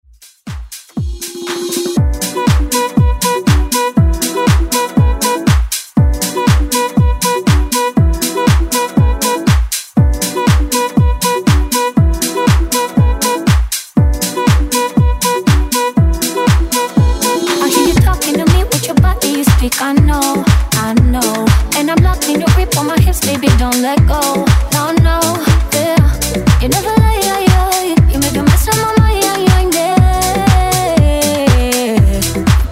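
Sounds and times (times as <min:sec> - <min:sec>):
dance music: 0:00.4 - 0:32.6.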